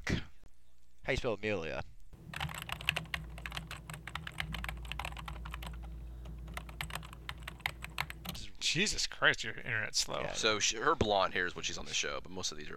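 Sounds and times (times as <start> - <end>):
speech: 1.1 - 1.9, 8.7 - 12.7
computer keyboard typing a name into IMDb: 2.2 - 8.4
steady low hum: 2.2 - 8.4.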